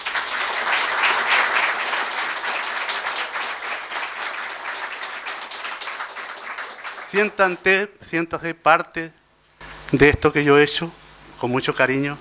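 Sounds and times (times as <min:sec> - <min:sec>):
audience applause: 0:00.0 - 0:07.9, 0:09.6 - 0:12.1
speech: 0:07.1 - 0:09.2, 0:09.9 - 0:12.1.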